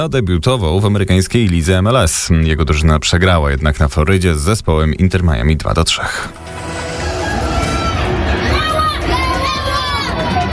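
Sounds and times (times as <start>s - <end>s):
speech: 0.0s - 6.7s
crowd of fans shouting greetings and cheers for footballer Robert Lewandowski: 6.3s - 10.5s.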